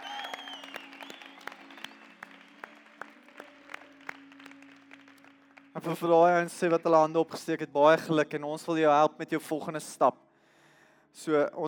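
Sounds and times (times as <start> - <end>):
church congregation applauding: 0.0 - 7.2
speech: 5.8 - 10.2, 11.2 - 11.6.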